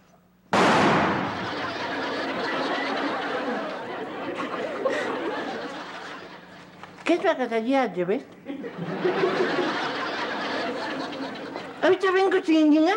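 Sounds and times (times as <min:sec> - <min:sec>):
rifle shot banging loudly: 0:00.5 - 0:01.5
laughter: 0:01.1 - 0:06.8, 0:08.5 - 0:12.1
speech: 0:07.1 - 0:09.8, 0:11.8 - 0:12.9.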